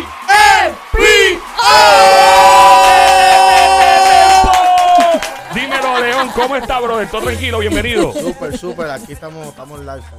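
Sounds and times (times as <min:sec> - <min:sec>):
crowd cheering and applauding at a concert hall: 0:00.0 - 0:09.0
laughter: 0:04.8 - 0:09.4
speech: 0:06.6 - 0:10.1.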